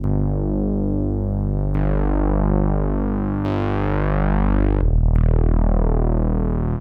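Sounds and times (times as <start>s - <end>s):
Moog synthesizer: 0.0s - 6.7s.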